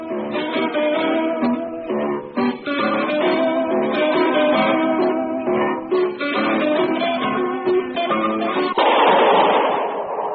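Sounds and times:
busy plucked string music: 0:00.0 - 0:09.5
gunshot that kills Harry Lime in a sewer beneath Vienna: 0:08.7 - 0:10.3.

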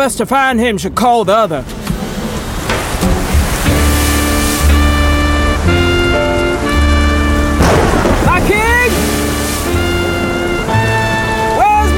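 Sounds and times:
speech: 0:00.0 - 0:01.8
storm rain: 0:01.6 - 0:11.9
stormy wind roaring: 0:01.8 - 0:11.6
sustained musical tones: 0:02.8 - 0:11.9.

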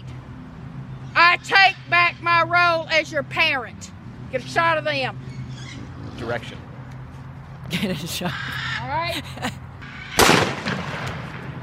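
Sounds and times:
speech: 0:01.3 - 0:05.3, 0:06.2 - 0:06.7, 0:07.7 - 0:09.6
laughter: 0:07.7 - 0:09.8
gunshots fired at a phone: 0:10.2 - 0:11.6.

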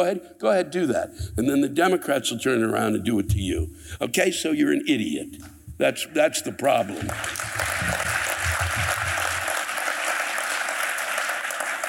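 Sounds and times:
speech: 0:00.0 - 0:08.2
audience applause: 0:06.9 - 0:11.8.

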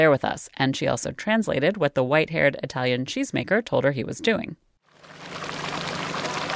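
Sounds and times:
speech: 0:00.0 - 0:04.6
milk pouring into large cheese vat: 0:05.0 - 0:06.5.

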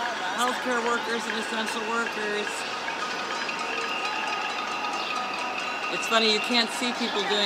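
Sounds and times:
city residents cheering from windows and balconies: 0:00.0 - 0:07.4
speech: 0:00.5 - 0:02.8, 0:05.9 - 0:07.4
high whistle-like tones: 0:03.3 - 0:07.4.

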